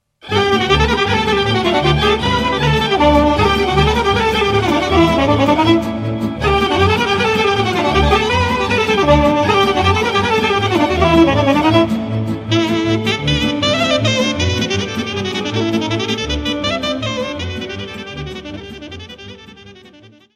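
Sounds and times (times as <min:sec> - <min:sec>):
Banat folk dance music from Romania: 0:00.2 - 0:19.9.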